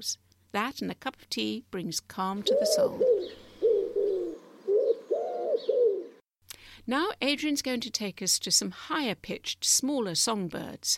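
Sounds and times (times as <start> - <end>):
speech: 0.0 - 3.4, 6.9 - 10.9
pigeon or dove cooing outdoors near garden bird feeders: 2.4 - 6.2.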